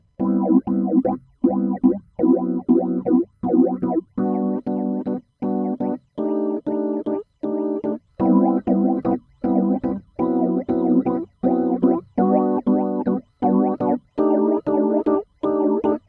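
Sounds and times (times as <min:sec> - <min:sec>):
Rhodes electric piano with phaser and flanger: 0:00.2 - 0:16.0.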